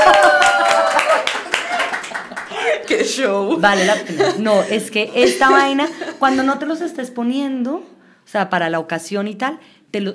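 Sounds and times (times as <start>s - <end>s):
people applauding: 0.0s - 2.9s
laughter: 0.0s - 6.7s
voices talking and reacting: 2.5s - 7.5s
speech: 3.2s - 10.1s.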